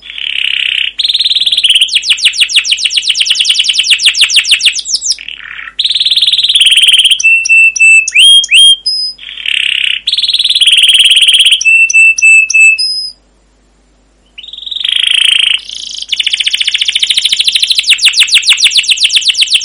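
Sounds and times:
canary churring rolls, trills and whistles: 0.0s - 13.2s, 14.2s - 19.6s.

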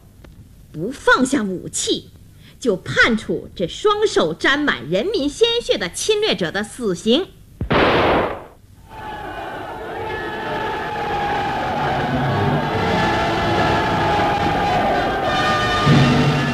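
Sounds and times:
speech: 0.8s - 7.4s
crowd cheering a guerrilla unit's battle victory: 8.8s - 16.5s.

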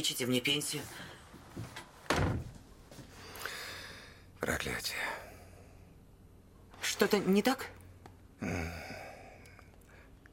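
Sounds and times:
speech: 0.0s - 1.2s, 4.5s - 5.2s, 7.0s - 7.8s, 8.4s - 8.9s
sticking house door being forced open with a thud: 2.1s - 2.6s.

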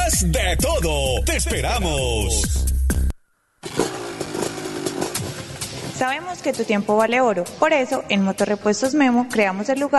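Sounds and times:
speech: 0.1s - 2.8s, 6.0s - 9.9s
motorcycle engine revving: 3.6s - 6.6s.

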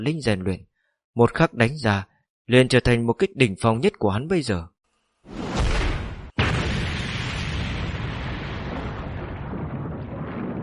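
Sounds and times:
speech: 0.0s - 5.4s
explosion boom sound effect: 5.3s - 10.6s.

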